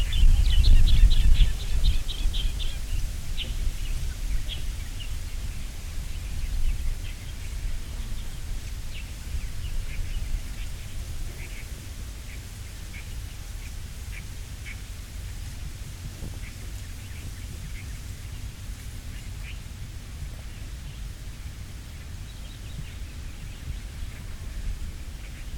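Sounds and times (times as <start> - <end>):
wind blowing across the water: 0.0 - 25.5.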